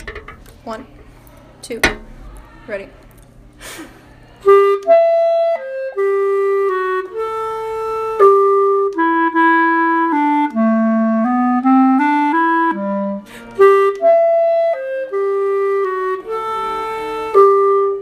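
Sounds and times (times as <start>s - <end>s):
bassoon: 4.4s - 17.9s.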